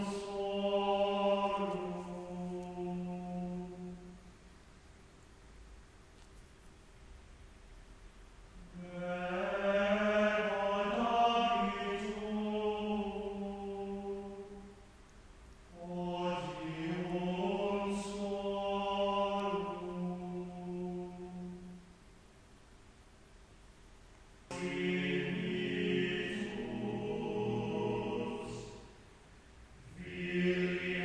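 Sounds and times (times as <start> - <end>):
choir singing: 0.0 - 4.2, 8.6 - 14.8, 15.7 - 21.8, 24.5 - 29.0, 29.8 - 31.0.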